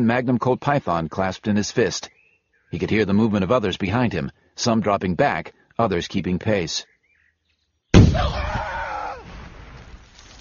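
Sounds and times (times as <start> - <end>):
speech: 0.0 - 2.1, 2.7 - 6.9, 8.1 - 8.5
landmine explosion: 8.0 - 10.3.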